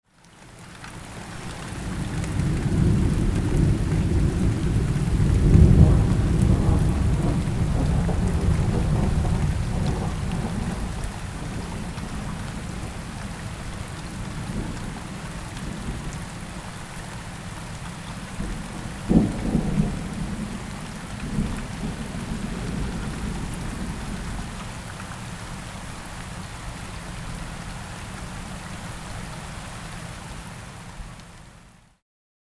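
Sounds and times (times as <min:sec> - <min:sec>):
rain: 0:00.0 - 0:32.0
thunder: 0:01.8 - 0:13.0, 0:18.4 - 0:24.5.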